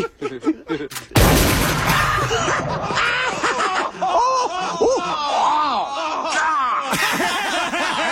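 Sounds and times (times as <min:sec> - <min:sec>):
laughter and chattering voices: 0:00.0 - 0:01.2, 0:02.2 - 0:08.1
shotgun blast to the face in a Jackass stunt: 0:01.2 - 0:03.4.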